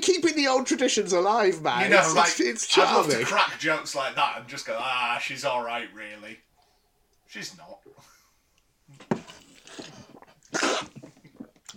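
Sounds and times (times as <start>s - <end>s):
speech: 0.2s - 6.5s, 7.3s - 8.1s
person coughing and spluttering after choking on tea: 9.0s - 11.7s.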